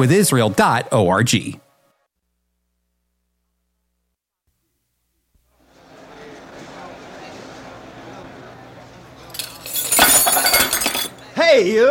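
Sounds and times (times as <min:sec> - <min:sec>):
speech: 0:00.0 - 0:01.6, 0:11.6 - 0:11.8
chatter: 0:05.5 - 0:11.8
glass clinking: 0:09.3 - 0:11.2.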